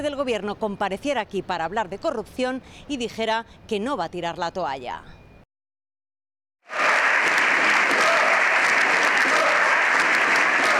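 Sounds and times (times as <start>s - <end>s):
speech: 0.0s - 5.2s
parliament assembly applauding: 6.7s - 10.7s.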